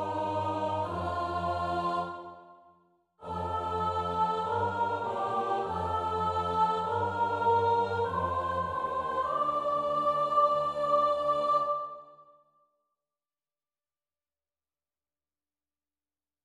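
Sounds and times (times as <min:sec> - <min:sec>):
four-part SATB choir singing a psalm: 0:00.0 - 0:12.3.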